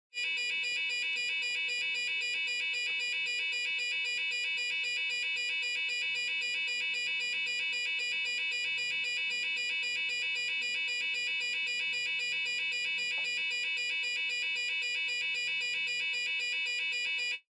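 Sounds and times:
alarm: 0.1s - 17.5s.

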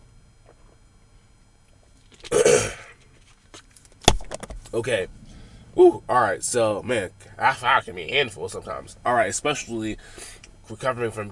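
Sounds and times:
person taking a swig of water: 2.1s - 3.0s
speech: 4.8s - 5.2s, 5.8s - 11.2s
throaty exhale: 10.0s - 10.4s.

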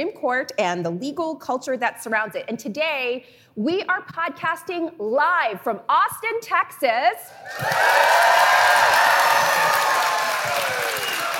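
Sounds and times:
speech: 0.0s - 11.3s
audience whoops and cheers: 7.4s - 11.3s
large live audience applause: 7.5s - 11.3s.

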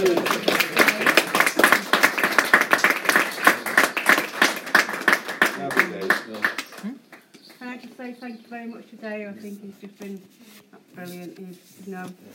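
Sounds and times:
audience clapping: 0.0s - 7.8s
speech: 9.4s - 12.3s.

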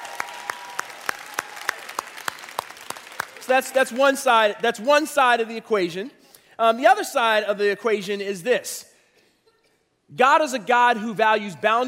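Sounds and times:
audience applause: 0.0s - 3.8s
speech: 3.4s - 8.9s, 10.1s - 11.8s.

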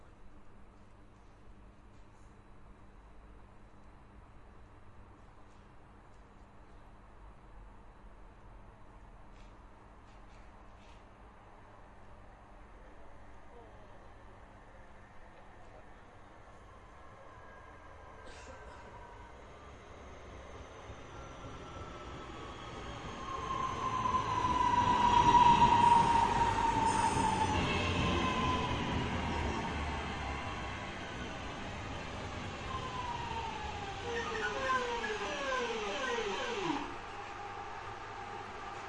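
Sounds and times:
trains passing: 15.5s - 38.8s.

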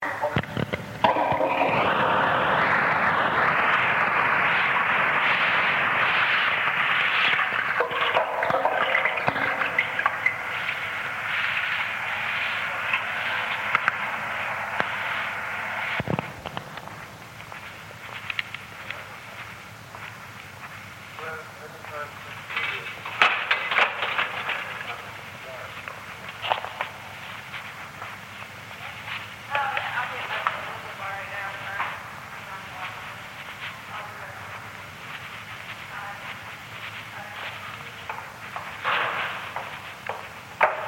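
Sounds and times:
footsteps walking down corridor: 0.0s - 40.8s
toilet flushing: 1.0s - 2.5s, 6.0s - 16.0s.

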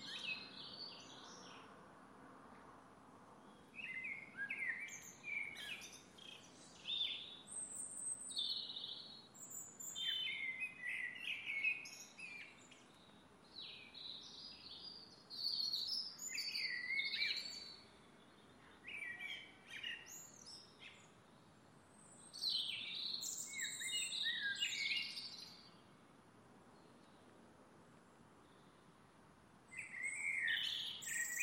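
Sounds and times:
birdsong in a garden at dusk: 3.4s - 26.0s, 29.7s - 31.4s.

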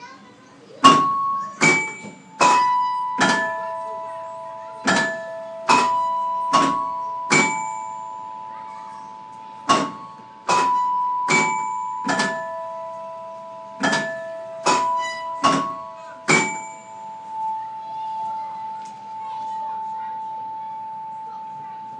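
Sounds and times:
bells at Barcelona zoo: 0.8s - 21.9s.

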